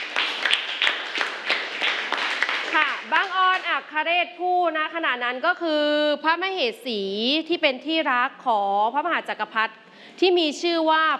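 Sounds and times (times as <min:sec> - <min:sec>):
classroom applause for a student group: 0:00.0 - 0:03.9
speech: 0:03.1 - 0:11.1.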